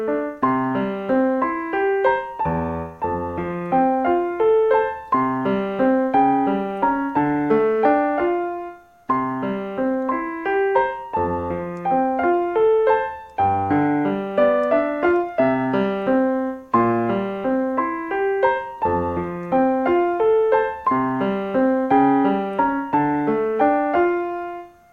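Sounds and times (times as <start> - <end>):
background piano music: 0.0 - 24.9.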